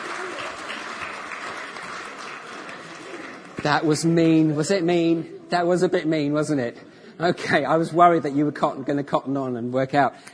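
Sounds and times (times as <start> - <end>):
audience applause: 0.0 - 4.0
speech: 3.6 - 10.3.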